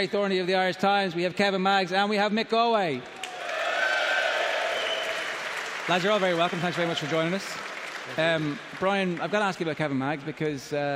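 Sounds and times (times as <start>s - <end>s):
speech: 0.0s - 3.3s, 5.9s - 10.9s
audience applause and cheering: 3.2s - 10.0s.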